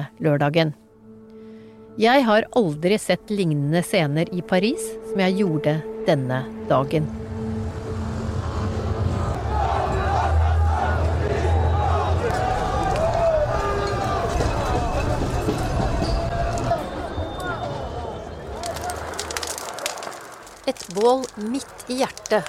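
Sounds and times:
speech: 0.1s - 0.8s, 2.0s - 7.2s, 21.0s - 22.4s
protest crowd of demonstrators in Paris: 8.3s - 20.2s.

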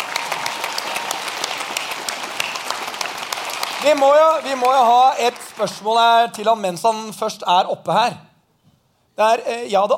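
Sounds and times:
audience applause: 0.0s - 6.3s
speech: 3.8s - 8.3s, 9.2s - 9.9s.

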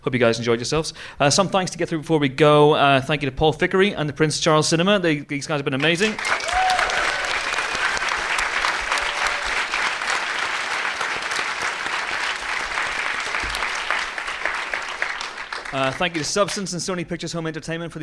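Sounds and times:
speech: 0.0s - 6.4s, 15.8s - 18.0s
audience applause: 5.8s - 16.6s.

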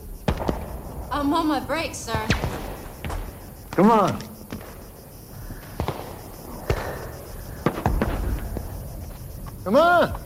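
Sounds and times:
gunshots in a film scene shooting lesson: 0.2s - 5.0s, 5.6s - 8.9s
speech: 1.2s - 2.7s, 3.8s - 4.3s, 9.6s - 10.2s.

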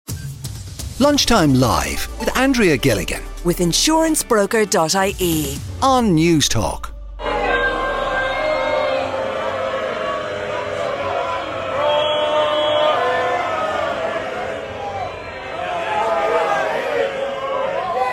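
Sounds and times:
speech: 1.0s - 6.9s
golf fans heckling and shouting: 7.2s - 18.1s.

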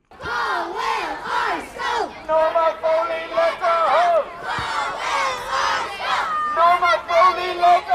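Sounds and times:
crowd shouting: 0.0s - 7.9s
children chanting at a protest in Dublin for an Irish-language secondary school: 0.1s - 2.2s, 4.3s - 6.6s.

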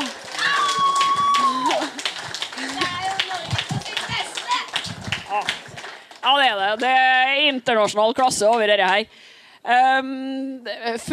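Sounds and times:
audience applause: 0.0s - 6.9s
speech: 6.3s - 11.1s.

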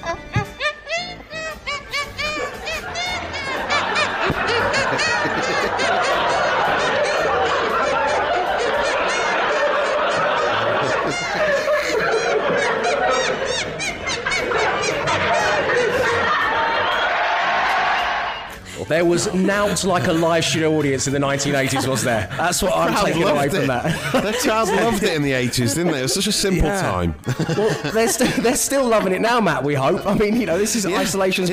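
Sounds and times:
TV sports theme tune played by squeezing air between cupped hands: 0.0s - 5.0s
laughter: 0.0s - 31.5s
speech: 19.0s - 31.5s.

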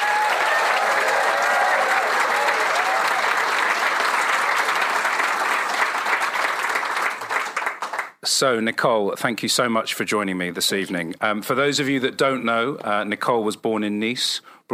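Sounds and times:
audience applause welcoming a guest on stage at an evening event: 0.0s - 8.2s
speech: 8.3s - 14.7s.

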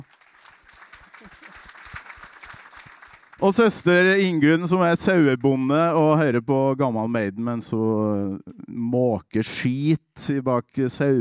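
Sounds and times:
audience applause: 0.0s - 3.8s
speech: 3.4s - 11.1s.

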